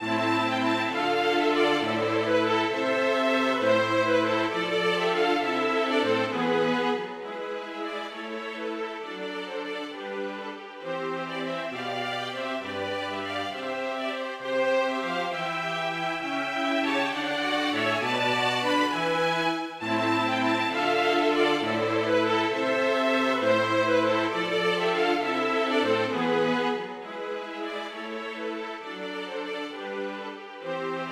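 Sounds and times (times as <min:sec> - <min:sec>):
string quartet playing a gigue without harpsichord: 0:00.0 - 0:31.1.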